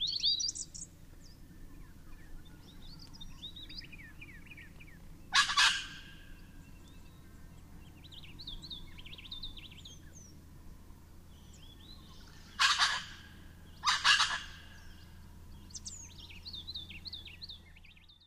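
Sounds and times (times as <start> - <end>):
small birds thin twittering whistles: 0.0 - 10.4, 11.3 - 18.2
wattlebird harsh rasping calls: 5.3 - 6.4, 12.4 - 15.1.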